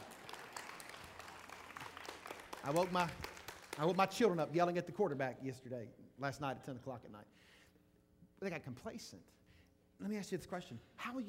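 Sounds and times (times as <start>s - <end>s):
audience clapping: 0.0s - 4.5s
speech: 2.6s - 7.6s, 8.4s - 9.4s, 10.0s - 11.2s.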